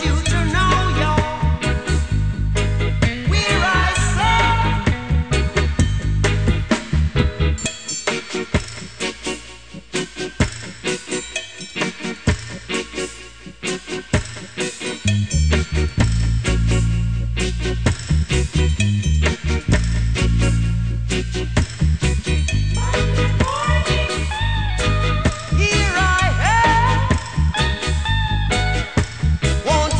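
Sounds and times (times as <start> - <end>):
reggae music: 0.0 - 29.9.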